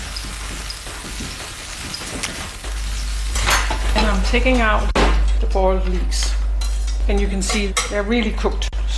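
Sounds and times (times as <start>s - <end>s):
capers frying in hot oil: 0.0s - 4.9s
speech: 4.2s - 6.4s, 7.1s - 8.9s.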